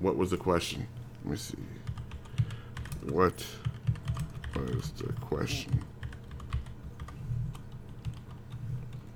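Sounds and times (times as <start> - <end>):
speech: 0.0 - 1.9, 3.0 - 3.7, 4.6 - 5.9
typing on a computer keyboard: 1.8 - 8.6.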